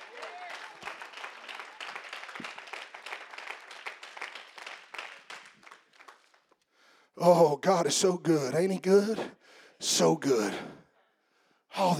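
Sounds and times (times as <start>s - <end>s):
audience clapping hands: 0.0s - 6.7s
speech: 7.2s - 10.8s, 11.8s - 11.9s.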